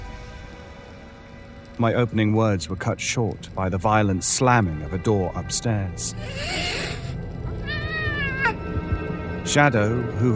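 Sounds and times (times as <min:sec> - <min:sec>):
speech: 0:01.8 - 0:06.9, 0:09.5 - 0:10.3
cat hissing: 0:06.1 - 0:08.6.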